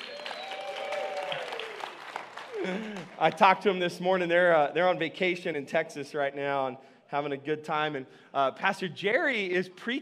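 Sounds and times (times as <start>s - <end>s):
audience clapping: 0.0s - 3.9s
speech: 2.6s - 9.9s.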